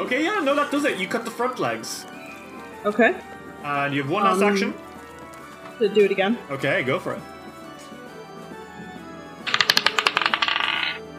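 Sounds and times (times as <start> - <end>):
speech: 0.1 - 2.2, 2.8 - 4.8, 5.8 - 7.3
dice rolling on a table during a tabletop game: 9.4 - 11.0.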